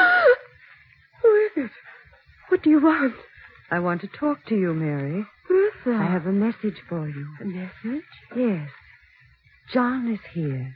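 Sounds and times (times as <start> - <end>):
woman's stifled scream: 0.0 - 0.5
speech: 2.6 - 8.8, 9.7 - 10.7.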